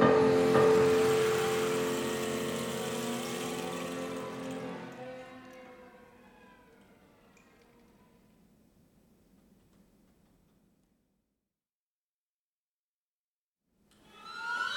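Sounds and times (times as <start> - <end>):
river flowing: 0.2 - 5.5.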